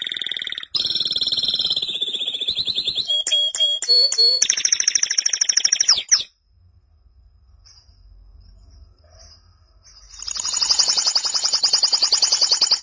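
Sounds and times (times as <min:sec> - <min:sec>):
canary trilling: 0:00.0 - 0:06.3, 0:10.0 - 0:12.8.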